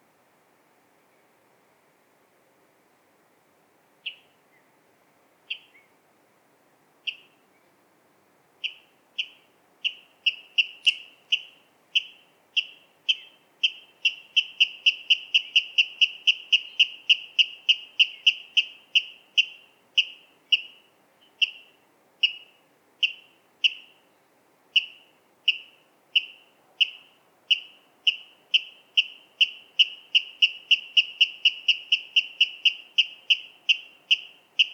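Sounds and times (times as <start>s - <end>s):
Water rail kip calls: 8.6s - 20.8s, 24.8s - 34.7s.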